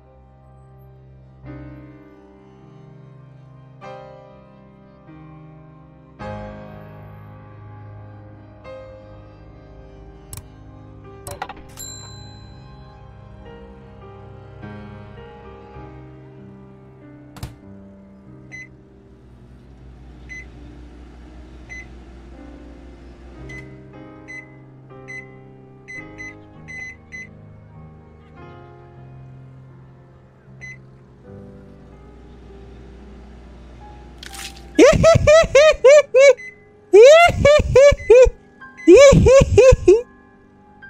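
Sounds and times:
microwave oven humming with a low droning tone: 18.4s - 25.4s, 30.6s - 34.2s
laughter: 34.8s - 36.4s, 37.0s - 38.3s, 38.9s - 40.0s.

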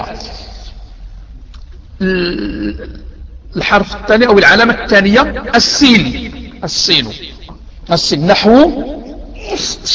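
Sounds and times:
speech: 2.0s - 9.9s
person sneezing: 9.4s - 9.9s.

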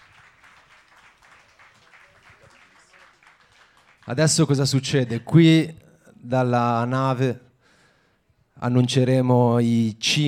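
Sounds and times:
faint applause for a blues band at a poetry and video prize final: 0.0s - 5.1s
speech: 4.1s - 7.4s, 8.6s - 10.2s.

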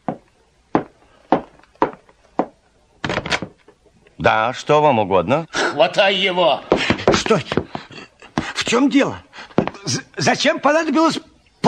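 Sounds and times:
door rattling as it is unlatched and pulled open: 3.0s - 3.6s
speech: 4.2s - 7.6s, 8.7s - 9.3s, 9.9s - 11.6s.

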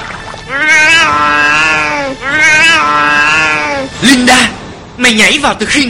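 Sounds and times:
cat meowing: 0.5s - 3.9s
speech: 5.1s - 5.8s.

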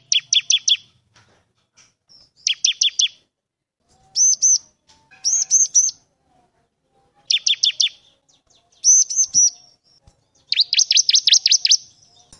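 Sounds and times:
bar-winged prinia singing vigorously: 0.0s - 0.9s, 2.1s - 3.2s, 4.1s - 6.0s, 7.2s - 12.3s.

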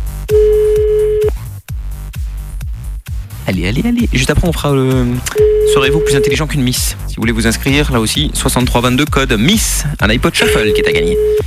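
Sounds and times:
rhythmic music bed with punchy beats: 0.0s - 11.4s
telephone ringback tone on the line of a radio call-in quiz: 0.3s - 1.3s, 5.4s - 6.4s, 10.4s - 11.4s
speech: 3.5s - 11.4s.

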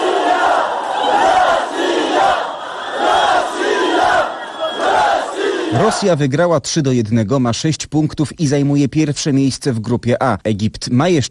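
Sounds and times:
fan zone crowd cheering after victory: 0.0s - 6.1s
speech: 5.8s - 11.2s.

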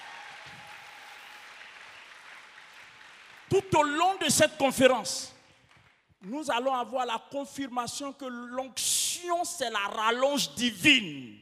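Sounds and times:
congregation at a Christian conference clapping: 0.0s - 6.9s
speech: 3.5s - 5.4s, 6.2s - 11.3s.

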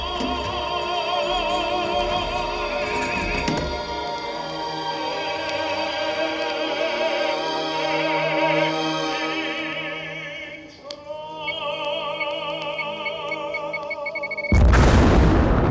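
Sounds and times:
orchestral music with wavering sustained tones: 0.0s - 12.6s
explosion with blast wave: 14.5s - 15.6s.

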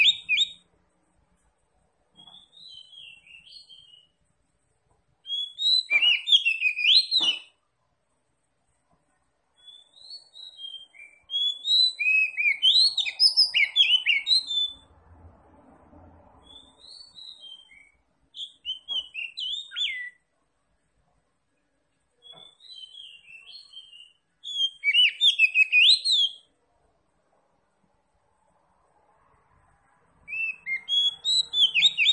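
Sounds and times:
Oriental magpie-robin whistling song: 0.0s - 0.6s, 2.2s - 4.2s, 5.2s - 7.6s, 9.6s - 14.9s, 16.4s - 20.3s, 22.2s - 26.5s, 30.2s - 32.1s.

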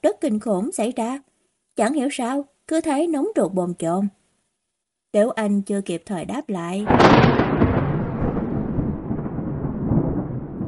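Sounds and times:
speech: 0.1s - 4.2s, 5.1s - 7.4s
loud crash of thunder: 6.9s - 10.6s.

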